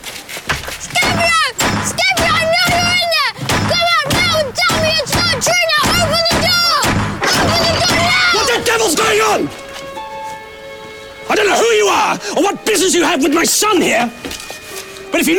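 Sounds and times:
heavy brass door knocker banging: 0.8s - 9.2s
person wailing and shouting: 0.8s - 9.5s
speech: 12.1s - 14.3s, 15.2s - 15.3s.

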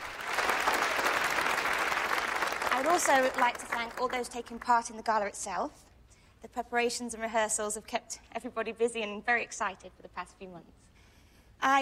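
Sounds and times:
audience applause: 0.0s - 4.2s
speech: 2.8s - 10.9s, 11.6s - 11.8s.

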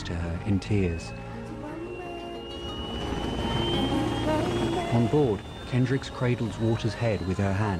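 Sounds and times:
speech: 0.4s - 1.2s, 4.9s - 7.7s
helicopters on an outdoor landing site droning: 2.6s - 7.7s.

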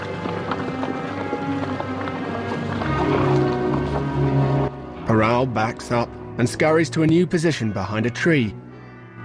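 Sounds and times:
several horses galloping across open grassland: 0.0s - 6.0s
speech: 5.2s - 8.6s.

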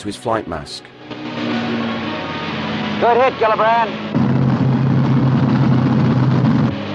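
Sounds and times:
speech: 0.0s - 1.6s, 3.0s - 4.1s
propeller plane engine roaring low past a white cross on rocks: 1.0s - 6.9s.

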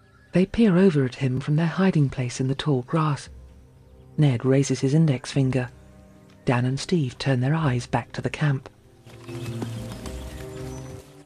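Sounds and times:
speech: 0.4s - 3.4s, 4.2s - 5.8s, 6.4s - 9.8s
brown horse's hooves clip-clopping as an officer leads it at a camp: 9.0s - 11.2s.

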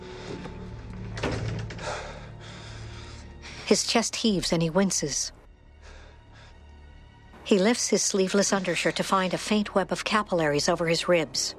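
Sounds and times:
noisy hum: 0.0s - 11.5s
door being shut: 1.0s - 1.8s
speech: 3.7s - 5.4s, 7.5s - 11.5s.

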